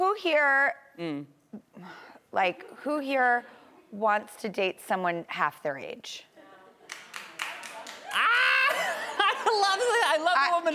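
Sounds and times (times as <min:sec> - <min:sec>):
speech: 0:00.2 - 0:06.3, 0:09.8 - 0:10.7
laughter: 0:06.4 - 0:10.6
audience member clapping: 0:06.9 - 0:08.3.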